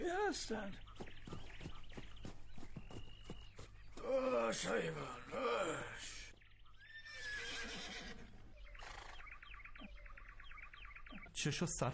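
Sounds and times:
speech: 0.0 - 0.9, 4.0 - 6.2, 11.4 - 11.9
hooves of several horses carrying approaching riders clip-clopping: 0.8 - 5.4.

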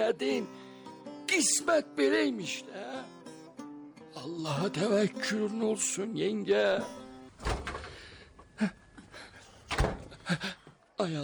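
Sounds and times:
speech: 0.0 - 0.6, 1.3 - 3.3, 4.2 - 7.6, 8.6 - 8.8, 10.3 - 11.2
door and frame thudding as it is opened: 7.4 - 8.0, 9.7 - 10.2.

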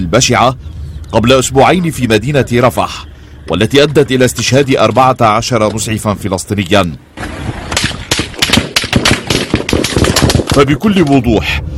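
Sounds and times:
speech: 0.0 - 7.6, 10.6 - 11.7
soldiers firing gunshots: 7.2 - 10.8.

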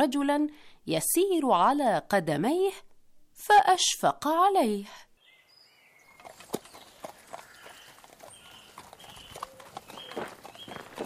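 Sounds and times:
speech: 0.0 - 5.1
horse hooves clip-clopping on a road: 6.0 - 11.0.

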